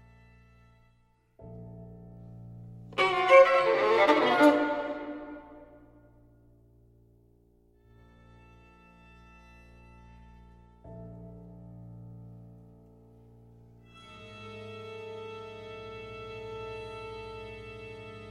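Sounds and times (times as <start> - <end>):
violin concerto: 3.0 - 5.9, 13.9 - 18.2.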